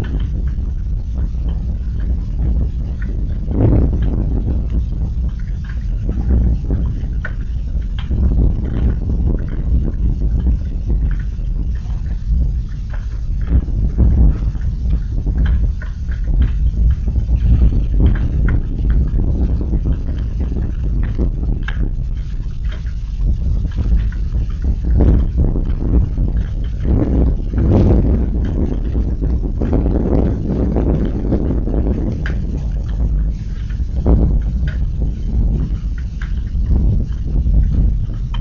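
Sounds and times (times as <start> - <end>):
midnight thunderstorm: 0.0 - 38.4.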